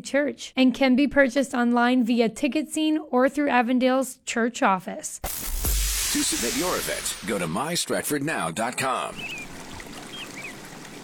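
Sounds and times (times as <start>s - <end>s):
speech: 0.0s - 9.5s
Avon River flowing past a retirement residence in Stratford: 8.8s - 11.0s.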